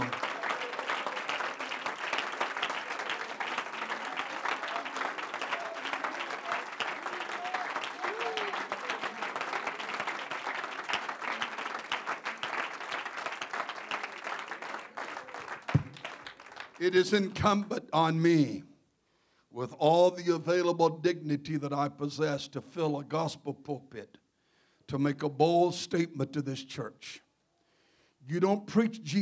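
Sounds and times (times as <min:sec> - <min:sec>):
audience clapping hands: 0:00.0 - 0:17.6
speech: 0:16.8 - 0:18.7, 0:19.6 - 0:24.2, 0:24.9 - 0:27.2, 0:28.3 - 0:29.1.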